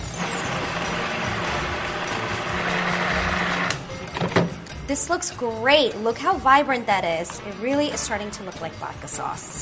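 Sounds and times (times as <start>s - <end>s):
immersion blender running: 0.2s - 3.8s
speech: 4.9s - 9.6s.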